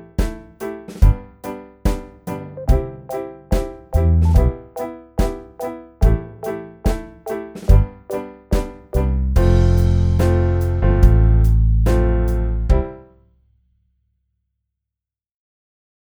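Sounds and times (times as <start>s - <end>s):
backing music: 1.9s - 13.0s.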